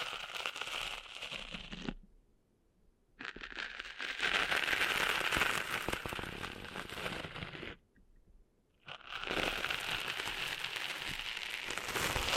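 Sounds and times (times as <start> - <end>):
scratchy crackling of cleaning sand out of ears: 0.0 - 2.0, 3.2 - 7.8, 8.9 - 12.3.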